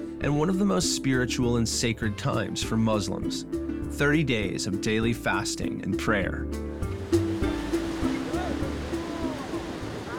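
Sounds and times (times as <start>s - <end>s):
speech: 0.2s - 6.9s
ocean waves: 6.7s - 10.1s.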